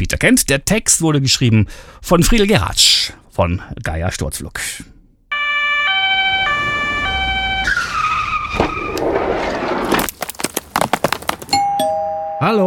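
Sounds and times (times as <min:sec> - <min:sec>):
speech: 0:00.0 - 0:04.9, 0:12.4 - 0:12.6
fire engine two-tone siren: 0:05.3 - 0:09.0
tyres screeching: 0:06.3 - 0:11.4.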